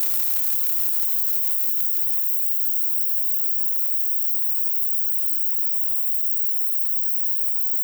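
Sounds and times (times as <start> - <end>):
long cymbal noise: 0.0 - 2.6.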